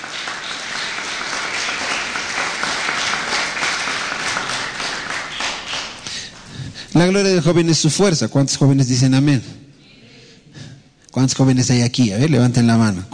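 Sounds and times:
audience applause: 0.0s - 6.5s
speech: 7.0s - 9.6s, 11.2s - 13.1s.

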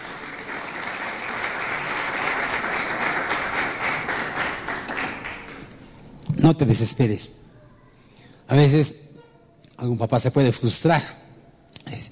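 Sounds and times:
audience applause: 0.0s - 5.6s
speech: 6.4s - 7.4s, 8.5s - 9.1s, 9.8s - 11.3s.

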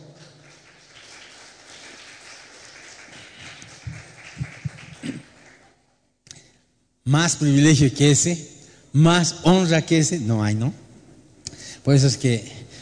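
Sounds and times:
audience applause: 0.0s - 5.8s
speech: 7.1s - 10.8s, 11.8s - 12.6s.

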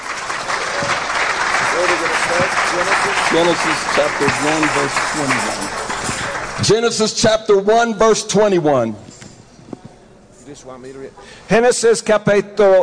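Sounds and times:
audience applauding: 0.0s - 7.1s
speech: 3.3s - 5.7s, 6.6s - 9.1s, 10.5s - 12.8s.

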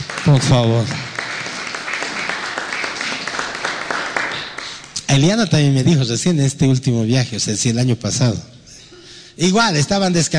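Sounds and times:
crowd applauding: 0.0s - 5.2s
speech: 0.2s - 1.0s, 5.1s - 8.6s, 9.4s - 10.3s.

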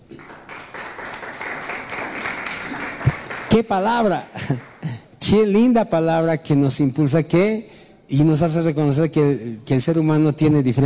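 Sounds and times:
crowd applauding: 0.0s - 5.0s
speech: 3.5s - 4.6s, 5.3s - 10.8s.

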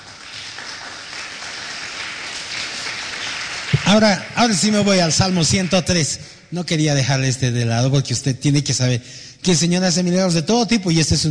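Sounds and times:
applause: 0.0s - 6.4s
speech: 3.9s - 11.2s.

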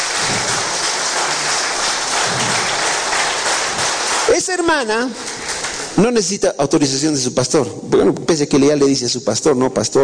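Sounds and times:
audience applause: 0.0s - 6.0s
speech: 4.4s - 5.4s, 6.0s - 10.0s.

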